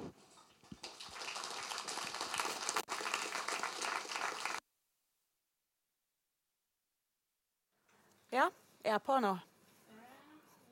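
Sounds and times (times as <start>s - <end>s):
audience applause: 0.8s - 4.6s
speech: 8.4s - 9.5s.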